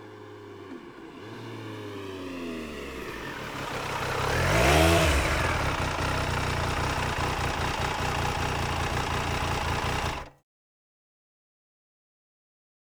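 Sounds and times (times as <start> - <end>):
Triumph Daytona 955i motorcycle engine: 0.0 - 10.3.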